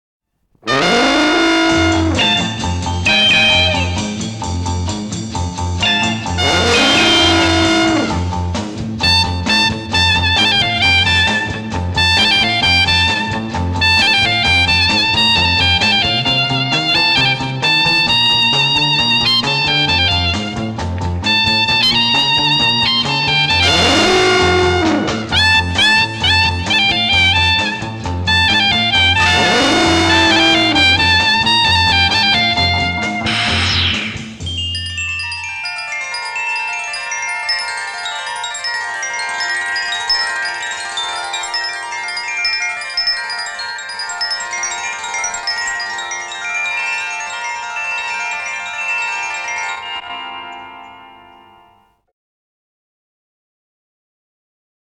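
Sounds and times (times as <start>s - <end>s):
instrumental music: 0.6s - 52.0s.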